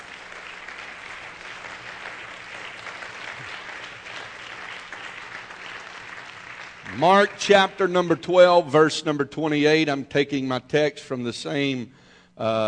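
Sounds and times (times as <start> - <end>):
congregation hand clapping: 0.0 - 8.2
speech: 7.0 - 12.6.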